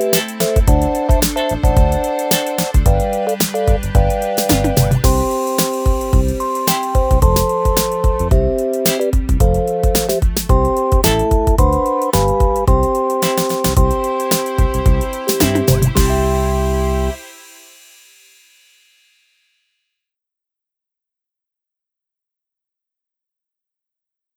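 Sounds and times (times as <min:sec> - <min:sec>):
tiny advert background music: 0:00.0 - 0:17.9.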